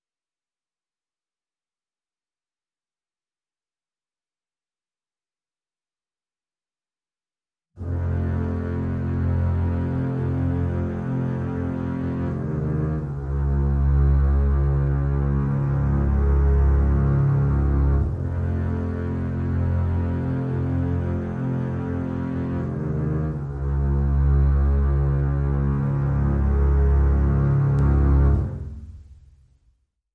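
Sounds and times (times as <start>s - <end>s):
bass mix: 7.8s - 29.8s.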